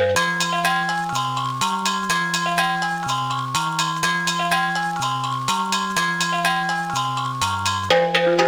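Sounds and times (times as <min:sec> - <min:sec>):
124 BPM melody in F minor: 0:00.1 - 0:08.3.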